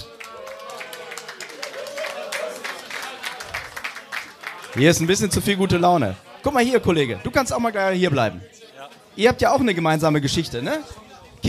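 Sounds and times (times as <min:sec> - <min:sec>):
audience applause: 0:00.0 - 0:05.4
speech: 0:04.7 - 0:08.5, 0:09.2 - 0:11.0.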